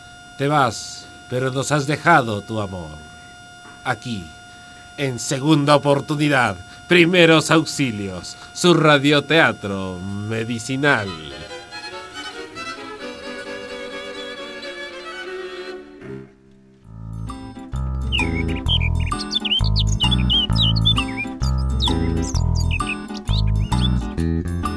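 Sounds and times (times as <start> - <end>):
speech: 0.4 - 3.1, 3.8 - 4.4, 5.0 - 11.6
sustained tonal music: 10.0 - 24.2
birds chirping: 17.0 - 24.2
loud thumping rhythmic beat: 17.0 - 24.2.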